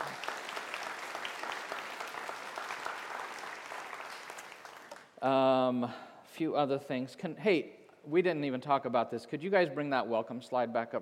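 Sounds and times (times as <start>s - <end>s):
audience applause: 0.0s - 5.1s
speech: 5.2s - 10.9s.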